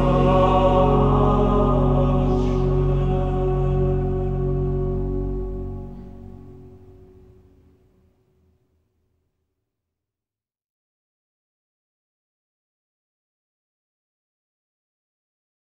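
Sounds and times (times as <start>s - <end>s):
Gregorian schola chanting: 0.0s - 6.4s.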